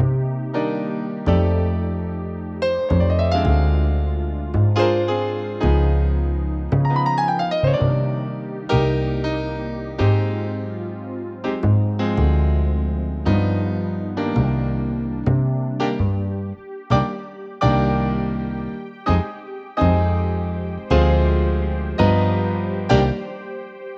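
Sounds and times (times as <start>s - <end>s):
jazz ballad backing music: 0.0s - 23.9s.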